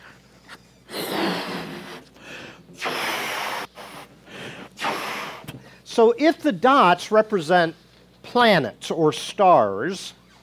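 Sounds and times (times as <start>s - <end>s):
person blowing up a balloon: 0.9s - 2.1s, 2.8s - 5.6s
speech: 6.0s - 7.8s, 8.4s - 10.2s.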